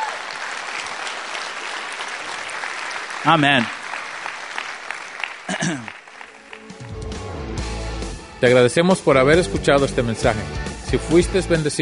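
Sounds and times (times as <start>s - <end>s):
audience applause: 0.0s - 7.2s
speech: 3.2s - 3.8s, 5.5s - 6.0s, 8.4s - 11.8s.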